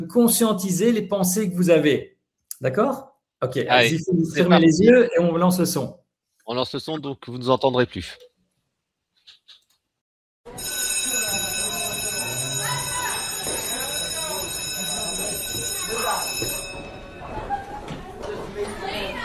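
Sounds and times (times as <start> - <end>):
speech: 0.1 - 8.3
many overlapping voices in a busy school playground: 10.6 - 19.2
shouts and high calls in a school playground: 11.2 - 16.4, 17.2 - 19.2.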